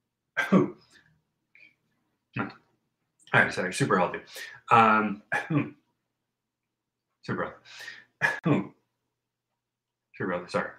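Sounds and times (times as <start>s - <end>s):
speech: 0.5s - 0.8s, 3.3s - 5.8s, 7.2s - 8.8s, 10.2s - 10.7s
throat clearing from a vocal tic: 5.3s - 5.8s, 8.2s - 8.7s.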